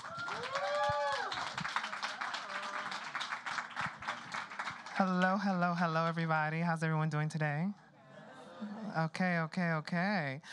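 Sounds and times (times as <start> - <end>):
applause: 0.0 - 5.6
speech: 5.0 - 7.8, 8.6 - 10.5.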